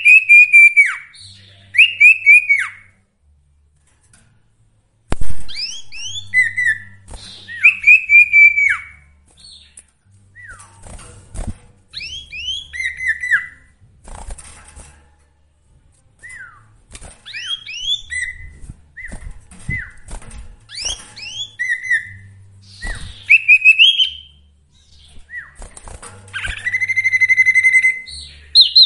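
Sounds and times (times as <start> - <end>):
sooty-headed bulbul song: 0.0 - 3.0, 5.5 - 10.8, 11.9 - 13.7, 16.2 - 20.0, 20.7 - 25.6, 26.3 - 28.8.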